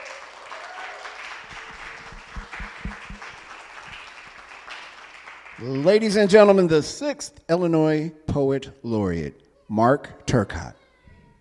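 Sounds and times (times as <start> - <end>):
audience applause: 0.0 - 6.0
speech: 5.6 - 10.8.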